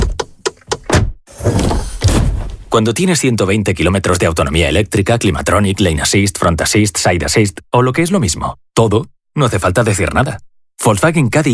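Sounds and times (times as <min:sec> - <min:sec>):
Volkswagen Caddy e-Hybrid plug-in hybrid van door closing: 0:00.0 - 0:02.8
speech: 0:02.7 - 0:11.5.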